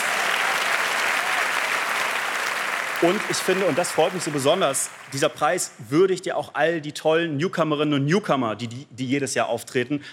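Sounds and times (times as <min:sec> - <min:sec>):
applause from a large audience: 0:00.0 - 0:05.6
speech: 0:03.0 - 0:10.1.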